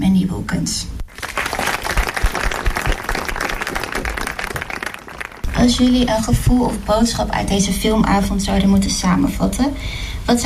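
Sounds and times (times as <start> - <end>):
speech: 0.5 - 1.0, 5.6 - 10.4
audience applause welcoming guests at a film evening: 1.1 - 6.3.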